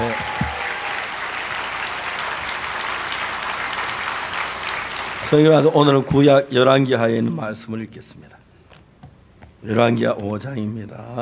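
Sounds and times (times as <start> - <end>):
audience applause: 0.0 - 5.7
speech: 5.3 - 8.4, 9.6 - 11.2.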